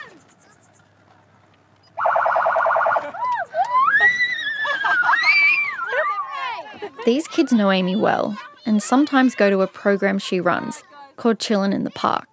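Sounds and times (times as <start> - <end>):
vehicle siren: 2.0 - 4.1
laughter: 2.8 - 8.4
speech: 7.0 - 12.3.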